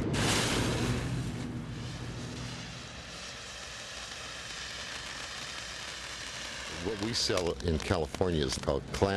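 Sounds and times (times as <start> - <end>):
New Yorker fountain firework going off: 0.1 - 9.1
speech: 6.9 - 9.1.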